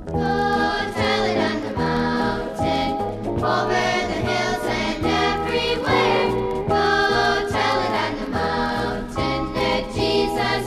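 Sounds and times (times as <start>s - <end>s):
choir singing: 0.2s - 10.6s.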